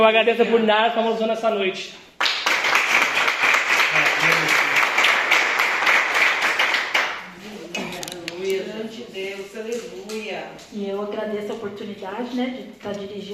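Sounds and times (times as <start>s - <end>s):
speech: 0.0s - 2.1s, 9.2s - 13.3s
audience applause: 2.2s - 7.2s.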